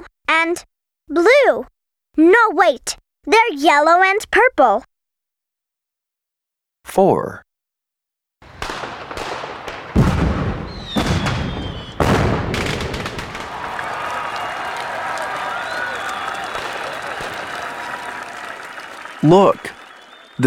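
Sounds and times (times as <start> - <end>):
speech: 0.4 - 4.9, 6.8 - 7.5, 19.2 - 19.8
fireworks exploding: 8.4 - 20.2.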